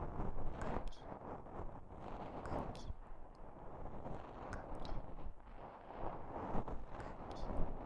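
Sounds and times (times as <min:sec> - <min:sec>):
finger scratching ears: 0:00.2 - 0:01.2, 0:01.9 - 0:05.4, 0:06.5 - 0:07.7.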